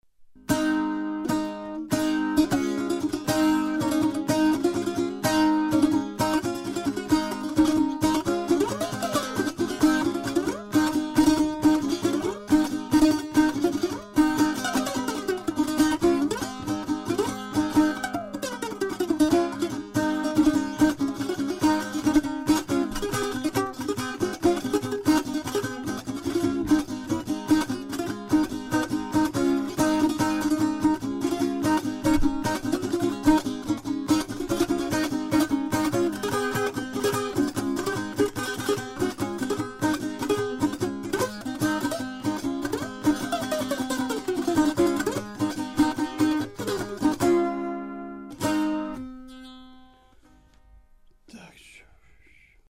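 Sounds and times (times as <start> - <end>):
virtuoso instrument playing: 0.4 - 50.8.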